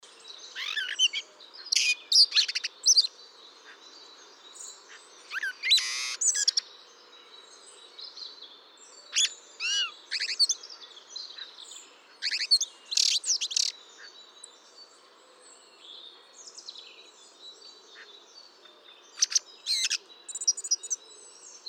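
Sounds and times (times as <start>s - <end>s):
Eurasian blackbird singing: 0.1s - 21.6s.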